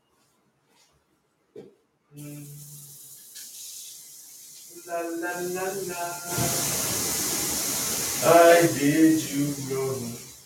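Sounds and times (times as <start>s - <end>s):
speech: 2.2s - 2.7s, 4.9s - 7.0s, 8.2s - 10.2s
water running from a tap: 2.2s - 10.4s.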